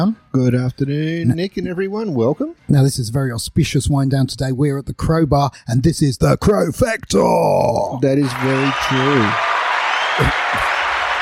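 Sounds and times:
speech: 0.0s - 9.5s, 10.2s - 10.7s
crowd cheering and applause: 8.2s - 11.2s.

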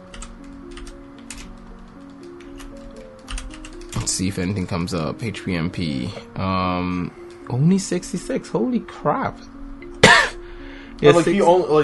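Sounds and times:
computer keyboard typing a search into YouTube: 0.0s - 5.0s
speech: 4.0s - 9.5s, 11.0s - 11.8s.

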